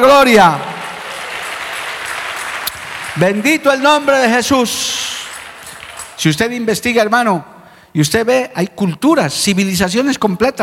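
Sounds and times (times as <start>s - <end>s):
speech: 0.1s - 0.7s, 3.2s - 5.2s, 6.2s - 10.6s
audience applause: 0.4s - 6.4s.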